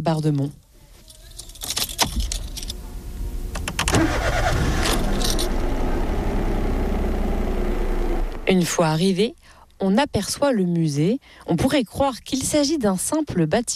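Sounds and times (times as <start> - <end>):
speech: 0.0 - 0.6, 8.5 - 13.7
keys jangling: 1.0 - 2.8, 4.8 - 5.6
car engine starting and running for a drive through the Marais Breton: 2.2 - 9.2.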